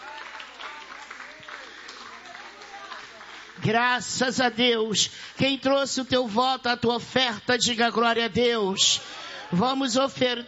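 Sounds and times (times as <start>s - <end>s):
church audience applauding: 0.0s - 6.0s
speech: 3.6s - 10.4s.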